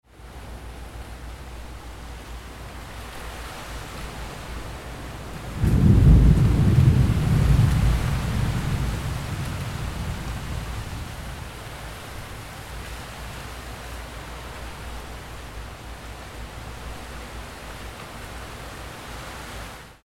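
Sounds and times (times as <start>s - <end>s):
thunder: 5.4s - 12.0s.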